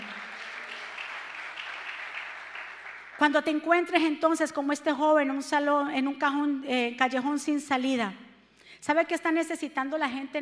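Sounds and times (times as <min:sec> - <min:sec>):
loud applause: 0:00.0 - 0:03.2
speech: 0:03.2 - 0:10.4.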